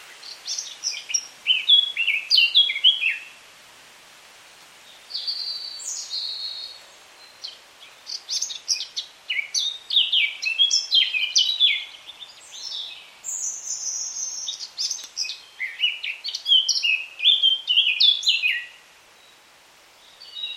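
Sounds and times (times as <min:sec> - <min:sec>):
Eurasian Blackcap warbling song: 0:00.0 - 0:03.3, 0:07.3 - 0:18.8.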